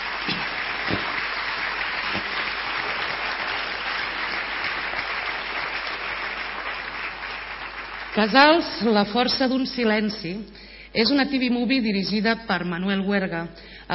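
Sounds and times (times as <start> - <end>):
audience applause: 0.0 - 8.6
speech: 8.2 - 13.9.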